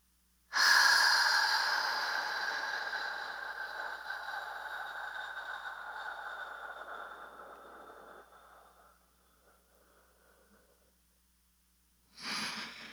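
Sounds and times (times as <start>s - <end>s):
slow paced breathing in a breathing exercise: 0.6s - 11.0s.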